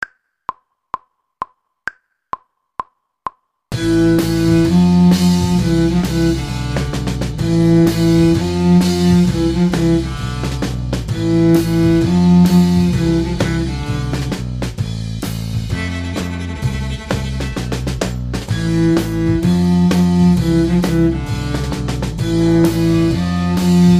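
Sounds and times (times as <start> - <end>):
cello section: 3.8 - 14.5, 15.7 - 17.9, 18.5 - 23.9.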